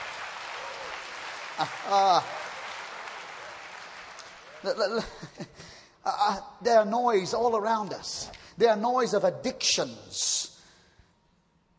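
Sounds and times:
audience clapping: 0.0s - 5.3s
speech: 1.6s - 2.4s, 4.6s - 10.5s.

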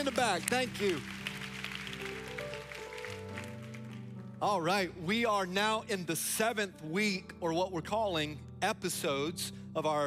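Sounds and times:
speech: 0.0s - 1.2s, 4.4s - 10.0s
audience clapping: 0.0s - 4.2s.

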